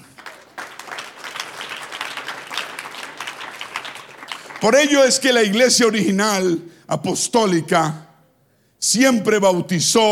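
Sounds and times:
audience applause: 0.0 - 5.6
speech: 4.6 - 8.1, 8.8 - 10.1.

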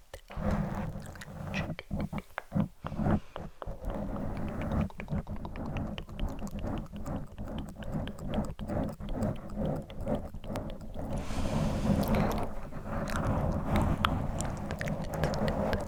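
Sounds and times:
microphone scratching: 0.4 - 15.8
bright hissy rush: 11.1 - 15.8.

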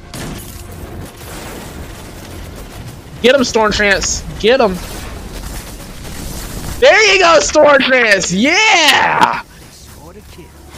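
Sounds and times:
video game gunfire in a Destiny 2 Gambit match: 0.0 - 10.7
speech: 3.2 - 5.0, 6.8 - 9.5.

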